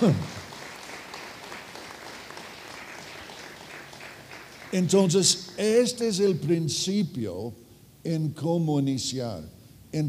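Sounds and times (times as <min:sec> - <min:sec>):
speech: 0:00.0 - 0:00.3, 0:04.7 - 0:10.0
audience applause: 0:00.0 - 0:04.9.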